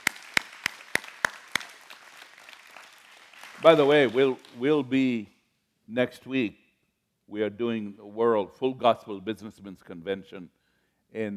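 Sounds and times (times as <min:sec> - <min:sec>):
group clapping in time: 0:00.0 - 0:05.2
speech: 0:03.6 - 0:05.3, 0:05.9 - 0:06.6, 0:07.3 - 0:11.3.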